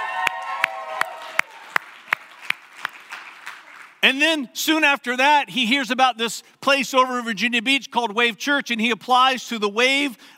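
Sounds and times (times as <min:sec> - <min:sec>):
audience clapping: 0:00.0 - 0:04.0
speech: 0:04.0 - 0:10.3.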